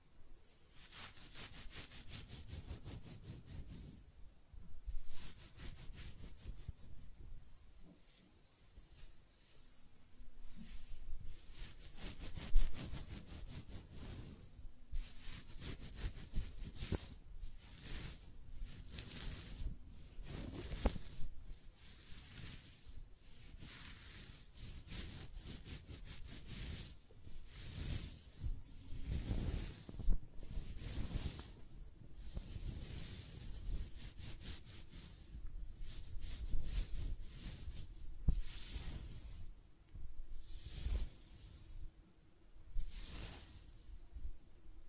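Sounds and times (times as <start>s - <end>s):
close-up hair scratching, brushing and stroking: 0.6s - 4.0s, 4.9s - 9.8s, 10.4s - 39.6s, 40.2s - 41.8s, 42.7s - 44.0s.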